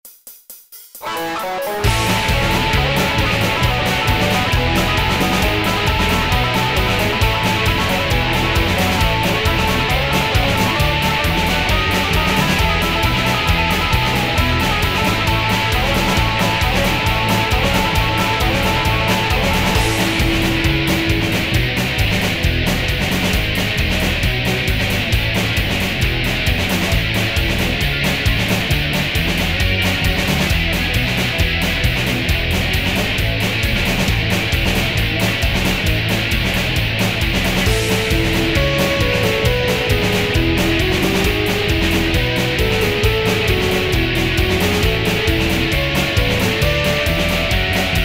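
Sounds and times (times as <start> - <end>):
instrumental music: 0.6 - 48.0.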